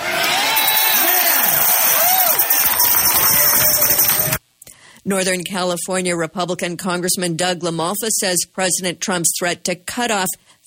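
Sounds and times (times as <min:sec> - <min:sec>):
rally crowd cheering: 0:00.0 - 0:04.4
speech: 0:05.1 - 0:10.6.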